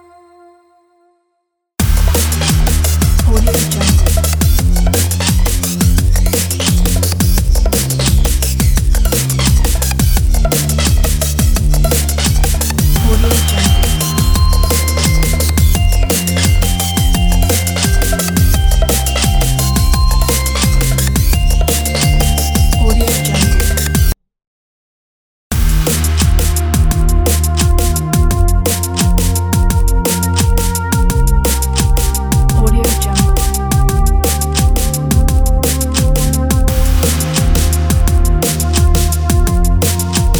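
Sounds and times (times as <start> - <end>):
energetic atmospheric futuristic drum and bass music: 1.8 - 24.2, 25.5 - 40.3.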